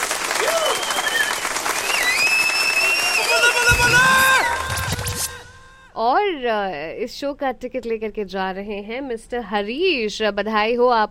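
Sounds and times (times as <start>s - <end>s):
applause: 0.0s - 5.4s
speech: 6.3s - 11.0s.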